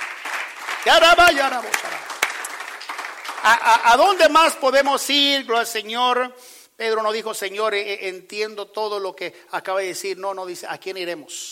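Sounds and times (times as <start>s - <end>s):
audience applause: 0.0s - 4.3s
speech: 0.8s - 2.0s, 3.4s - 11.5s.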